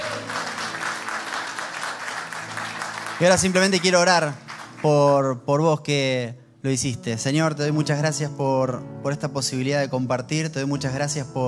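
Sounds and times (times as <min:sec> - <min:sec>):
audience applause: 0:00.0 - 0:05.1
speech: 0:03.2 - 0:11.4.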